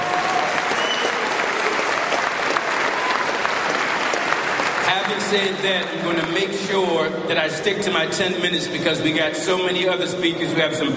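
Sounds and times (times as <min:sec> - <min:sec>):
audience round of applause: 0:00.0 - 0:06.5
speech: 0:05.1 - 0:10.9.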